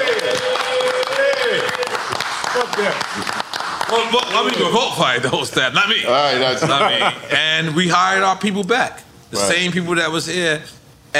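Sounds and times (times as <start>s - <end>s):
audience clapping at a live talk: 0.0s - 4.8s
speech: 2.6s - 11.1s
laughter: 6.4s - 7.8s.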